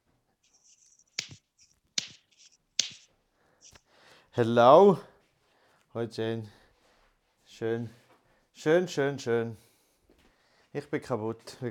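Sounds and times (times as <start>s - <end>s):
hand clap: 1.2s - 1.4s, 2.0s - 2.2s, 2.8s - 3.1s
speech: 4.4s - 5.1s, 6.0s - 6.6s, 7.6s - 8.0s, 8.6s - 9.6s, 10.8s - 11.6s.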